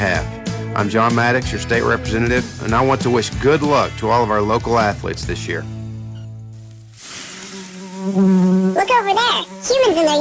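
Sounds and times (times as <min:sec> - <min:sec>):
speech: 0:00.0 - 0:05.8, 0:08.1 - 0:10.1
loud broad hiss: 0:06.5 - 0:08.8
mosquito buzzing effect in a pest control advert: 0:07.3 - 0:10.1.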